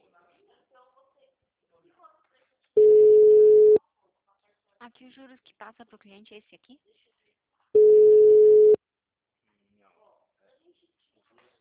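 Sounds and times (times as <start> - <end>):
telephone busy-line tone: 2.8 - 3.8, 7.8 - 8.8
speech: 4.8 - 7.2.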